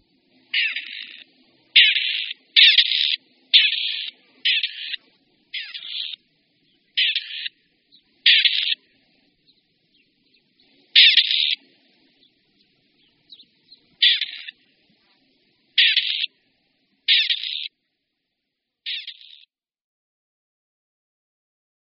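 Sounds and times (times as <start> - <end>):
grey partridge rasping calls: 0.5 - 16.4, 17.0 - 17.7, 18.9 - 19.5.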